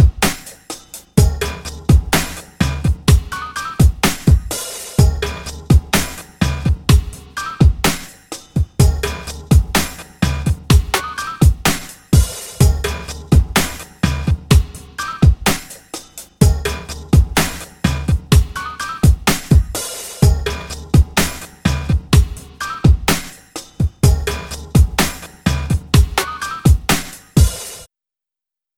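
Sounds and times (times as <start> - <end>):
drums: 0.0 - 27.9
didgeridoo: 1.2 - 3.8, 5.0 - 7.4, 8.8 - 11.3, 12.6 - 15.0, 16.4 - 19.0, 20.2 - 22.5, 24.0 - 26.5.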